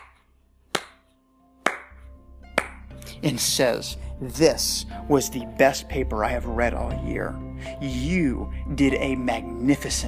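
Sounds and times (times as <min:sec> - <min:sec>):
slow clapping: 0:01.6 - 0:02.9
speech: 0:03.2 - 0:10.0.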